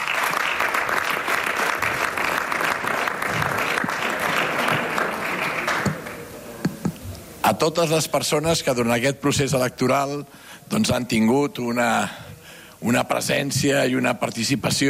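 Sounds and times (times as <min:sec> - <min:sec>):
audience applause: 0:00.0 - 0:06.7
speech: 0:07.5 - 0:12.2, 0:12.8 - 0:14.8.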